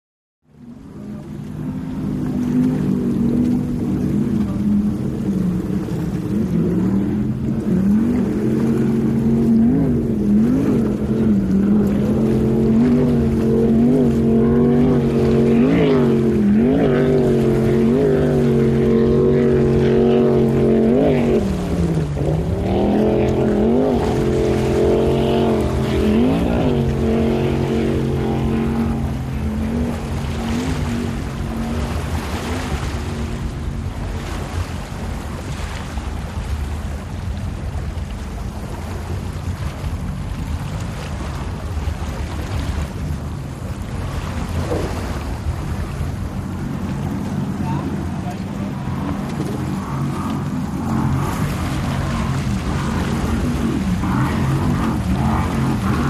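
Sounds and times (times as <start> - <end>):
offshore power boat race ambience: 0.4 - 56.0.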